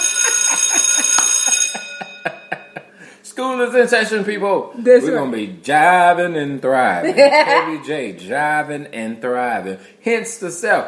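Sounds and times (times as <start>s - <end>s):
bell ringing: 0.0s - 2.9s
speech: 3.4s - 10.8s.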